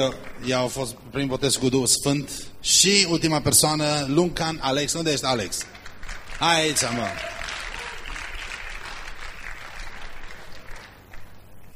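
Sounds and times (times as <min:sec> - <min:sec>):
speech: 0:00.0 - 0:05.8, 0:06.4 - 0:07.4
congregation applause at a church service for newly baptised members: 0:05.6 - 0:11.5.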